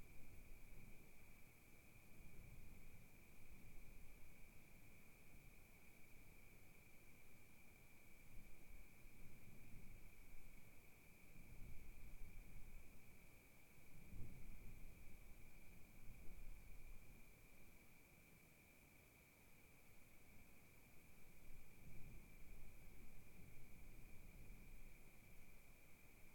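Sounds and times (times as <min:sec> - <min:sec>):
gentle wind gusts at Kiger Lookout in Oregon wilderness: 0:00.0 - 0:26.3
night crickets chirping at Kiger Lookout in Oregon wilderness: 0:00.0 - 0:26.3.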